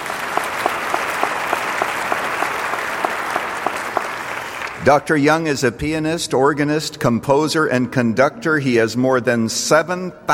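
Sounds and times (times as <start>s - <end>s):
audience applause: 0.0s - 4.8s
speech: 4.8s - 10.3s.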